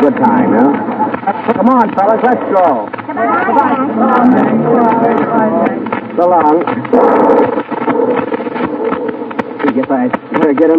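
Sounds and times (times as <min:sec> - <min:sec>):
speech: 0:00.0 - 0:00.9, 0:01.5 - 0:08.5, 0:09.7 - 0:10.7
wind blowing: 0:00.0 - 0:10.7.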